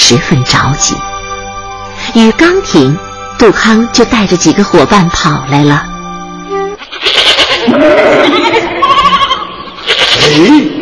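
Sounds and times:
speech: 0:00.1 - 0:01.1, 0:02.1 - 0:05.9, 0:07.6 - 0:08.7, 0:10.2 - 0:10.8
goats bleating: 0:06.8 - 0:10.7.

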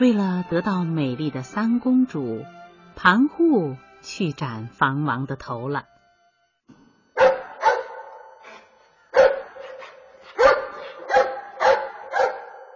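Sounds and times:
speech: 0:00.0 - 0:05.9
dog barking: 0:07.2 - 0:08.3, 0:09.1 - 0:12.7.

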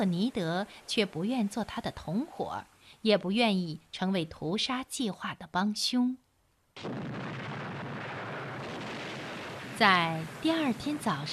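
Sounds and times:
speech: 0:00.0 - 0:06.2, 0:06.8 - 0:07.5, 0:09.8 - 0:11.3
bombs and cannon fire during a warship attack on a submarine: 0:06.8 - 0:11.3.

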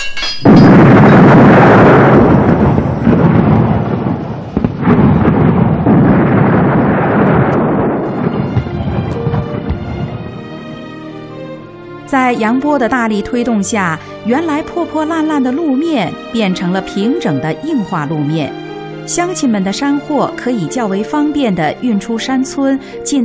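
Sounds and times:
explosive blast for mountain road construction: 0:00.4 - 0:10.8
speech: 0:12.3 - 0:23.2.

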